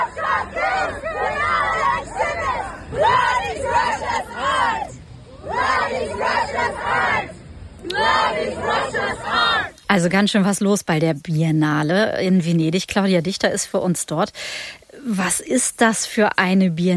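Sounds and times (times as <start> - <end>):
activists chanting in protest: 0.0 - 9.7
murmur: 0.0 - 10.2
speech: 8.0 - 16.9.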